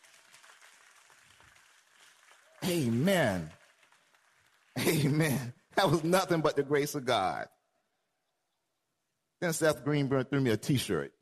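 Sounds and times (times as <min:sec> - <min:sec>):
audience clapping: 0:00.0 - 0:06.4
speech: 0:02.6 - 0:03.6, 0:04.9 - 0:07.6, 0:09.4 - 0:11.2.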